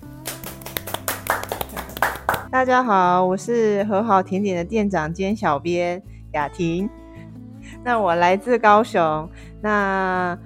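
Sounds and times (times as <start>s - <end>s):
applause welcoming guests: 0.0s - 2.5s
speech: 2.5s - 7.0s, 7.8s - 10.4s.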